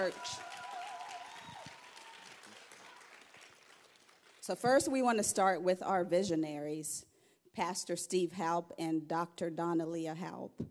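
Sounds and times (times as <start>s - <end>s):
speech: 0.0s - 0.5s, 4.5s - 10.6s
audience applause: 0.0s - 4.4s.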